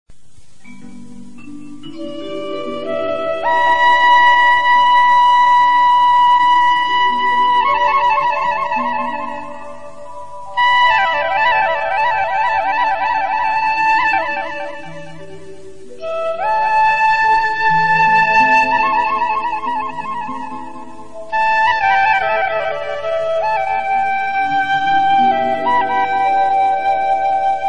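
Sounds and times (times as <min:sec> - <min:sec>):
romantic flute: 0:00.6 - 0:27.6.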